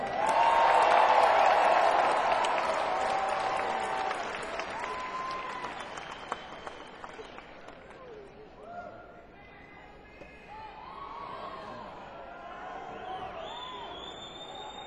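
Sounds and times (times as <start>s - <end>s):
concert audience applause: 0.0s - 8.2s.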